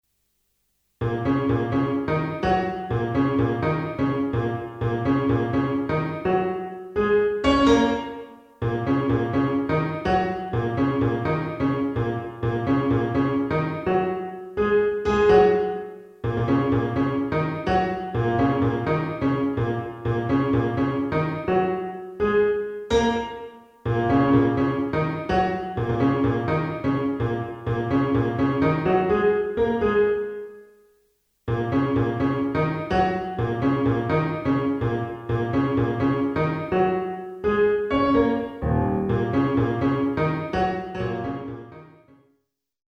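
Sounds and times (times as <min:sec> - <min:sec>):
pop piano: 0:01.0 - 0:30.7, 0:31.5 - 0:42.1.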